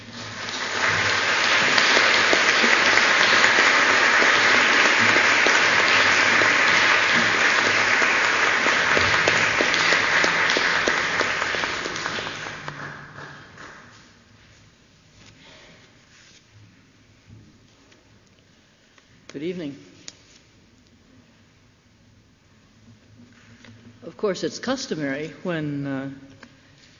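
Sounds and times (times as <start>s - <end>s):
audience applause welcoming a speaker at the San Francisco Zen Center: 0.0s - 14.0s
speech: 24.3s - 26.4s.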